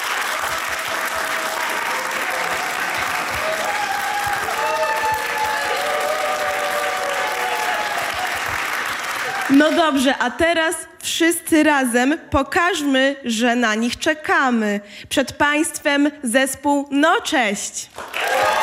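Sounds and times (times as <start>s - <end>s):
crowd of adults applauding: 0.0s - 10.1s, 17.9s - 18.6s
high wavering vocal cheers: 0.4s - 8.5s, 9.2s - 9.6s, 18.2s - 18.6s
speech: 9.5s - 18.2s.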